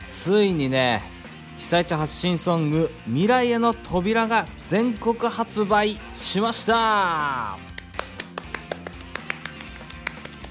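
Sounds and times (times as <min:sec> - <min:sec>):
speech: 0:00.2 - 0:07.7
one person clapping hands: 0:07.7 - 0:10.4.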